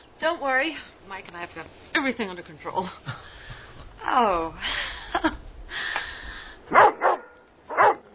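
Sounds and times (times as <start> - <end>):
speech: 0.4 - 3.3, 4.1 - 5.4
dog barking: 6.7 - 8.1.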